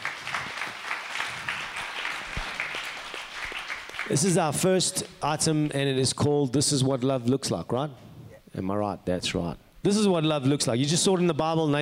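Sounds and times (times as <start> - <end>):
audience applause: 0.0 - 4.4
speech: 4.1 - 11.8.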